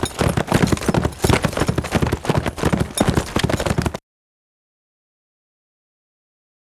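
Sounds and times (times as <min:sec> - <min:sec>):
horse at a fast gallop, thudding hoofbeats: 0:00.0 - 0:04.0.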